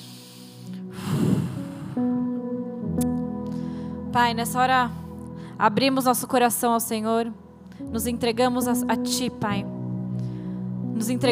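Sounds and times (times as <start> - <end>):
person breathing in deeply during a guided prayer: 0.0 - 2.2, 3.5 - 4.1, 10.1 - 10.8
soft sustained musical tones: 0.0 - 11.2
speech: 4.2 - 5.0, 5.6 - 9.7, 11.0 - 11.2.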